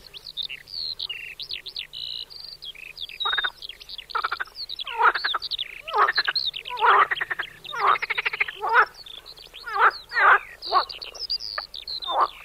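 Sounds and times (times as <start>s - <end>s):
marsh frog croaking in pulsed rattling bursts: 2.8s - 12.4s.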